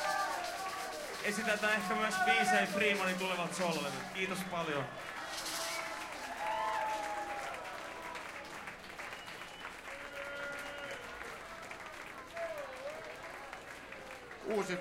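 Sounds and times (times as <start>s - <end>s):
audience applause: 0.0s - 14.8s
speech: 1.2s - 5.2s, 14.5s - 14.8s.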